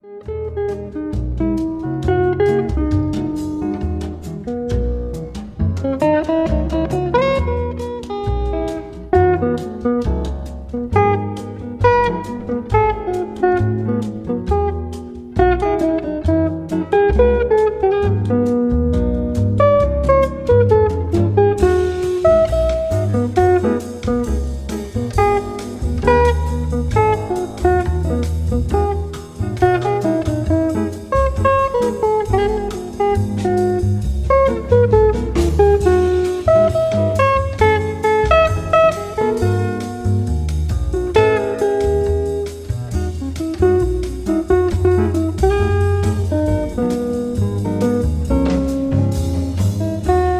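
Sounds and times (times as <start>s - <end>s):
nocturnal jazz melodies: 0.0s - 50.3s.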